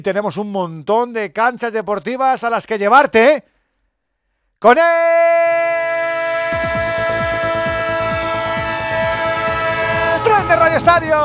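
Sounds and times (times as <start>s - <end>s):
speech: 0.0s - 3.5s, 4.6s - 5.6s, 10.6s - 11.2s
multi-tone train horn: 6.1s - 11.2s.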